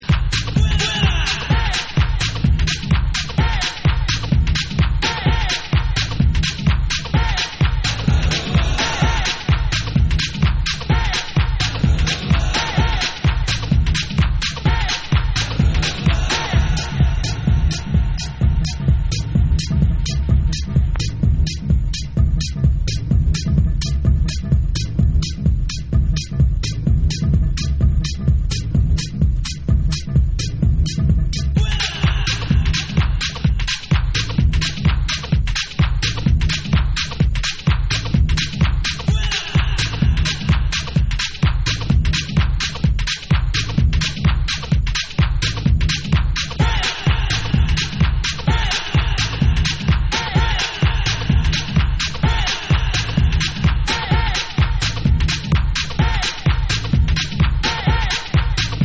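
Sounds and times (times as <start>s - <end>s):
rumba music: 0.0s - 58.8s.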